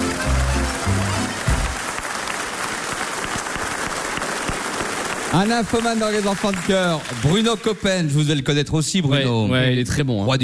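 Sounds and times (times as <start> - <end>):
audience applause: 0.0 - 8.2
speech: 5.4 - 10.4.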